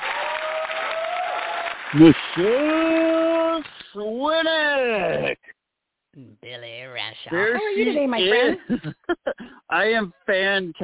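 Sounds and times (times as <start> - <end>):
audience applause: 0.0 - 3.8
speech: 1.9 - 5.4, 6.2 - 10.8
laughter: 7.3 - 9.6.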